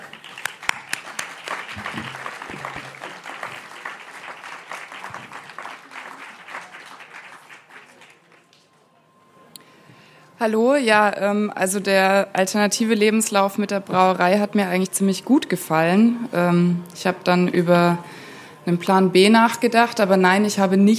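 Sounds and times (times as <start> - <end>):
audience applause: 0.0 - 8.8
speech: 10.4 - 20.9.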